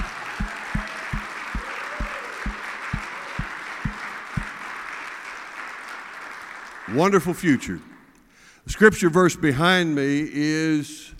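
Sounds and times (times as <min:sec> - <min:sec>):
audience applause: 0:00.0 - 0:07.3
speech: 0:06.9 - 0:07.9, 0:08.8 - 0:11.1.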